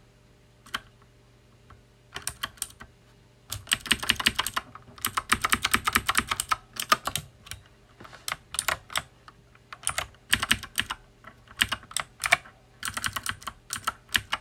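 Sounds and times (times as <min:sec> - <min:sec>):
typing on a loud mechanical keyboard: 0:00.7 - 0:00.9, 0:02.1 - 0:02.9, 0:03.5 - 0:07.7, 0:08.3 - 0:14.4.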